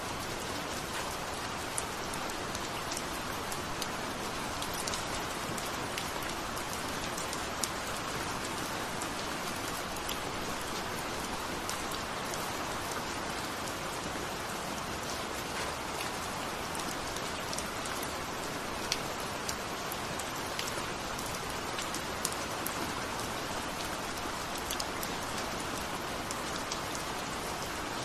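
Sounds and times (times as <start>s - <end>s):
rain: 0.0s - 28.0s.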